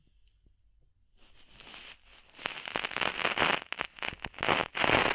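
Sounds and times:
ear cleaning crackling and rustling: 0:01.3 - 0:05.1.

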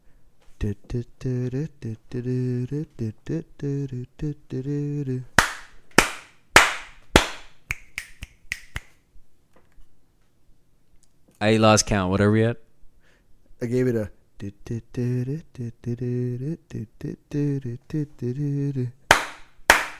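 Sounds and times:
speech: 0:00.6 - 0:05.3, 0:11.4 - 0:12.6, 0:13.6 - 0:19.0
finger snaps: 0:05.4 - 0:09.0.

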